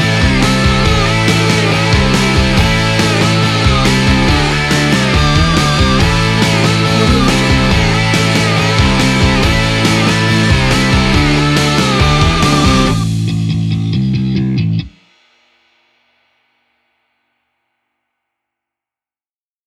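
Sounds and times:
extreme rock music: 0.0s - 15.0s.

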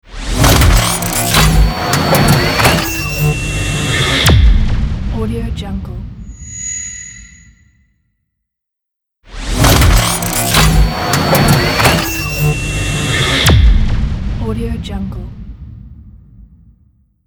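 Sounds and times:
sci-fi cyber logo sound: 0.1s - 5.2s, 9.4s - 14.4s.

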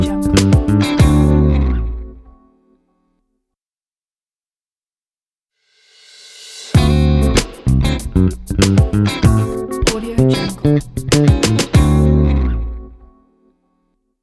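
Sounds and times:
groove logo jingle: 0.0s - 2.4s, 6.7s - 12.9s.

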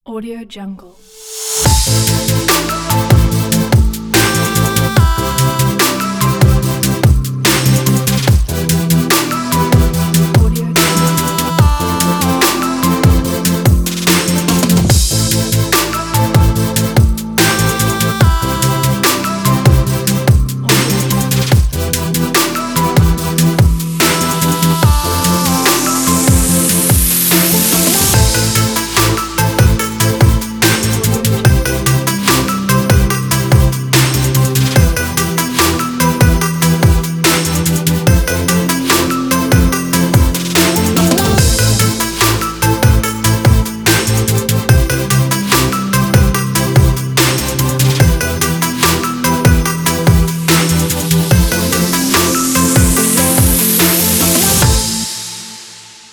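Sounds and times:
modern podcast vlog music: 0.1s - 56.0s.

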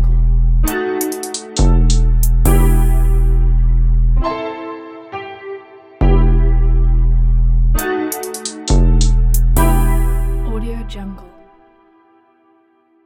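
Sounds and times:
drill hop music: 0.1s - 4.4s, 6.0s - 11.1s.

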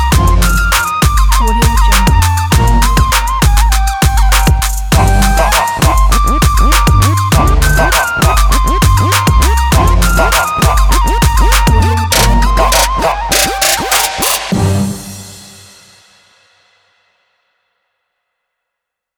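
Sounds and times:
flute trap beat: 0.0s - 15.0s.

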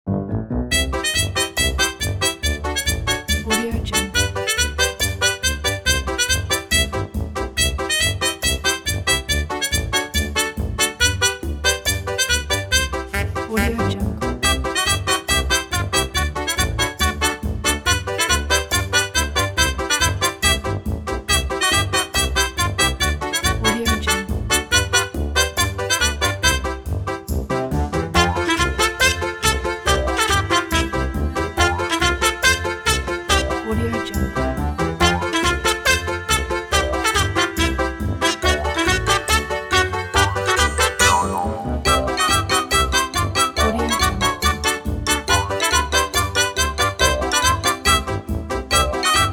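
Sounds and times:
happy comedic song: 0.5s - 49.3s.

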